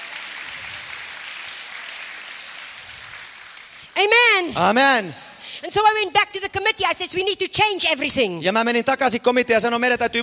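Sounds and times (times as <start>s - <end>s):
audience clapping: 0.0s - 4.2s
speech: 4.0s - 10.2s.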